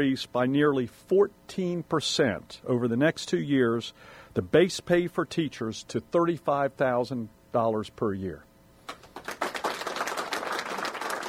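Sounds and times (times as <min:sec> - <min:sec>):
speech: 0:00.0 - 0:08.5
audience applause at a high school event: 0:08.9 - 0:11.2.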